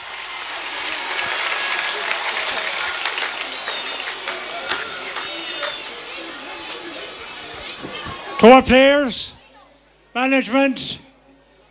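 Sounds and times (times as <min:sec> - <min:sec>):
audience applause: 0:00.0 - 0:08.6
speech: 0:08.4 - 0:09.4, 0:10.2 - 0:11.0.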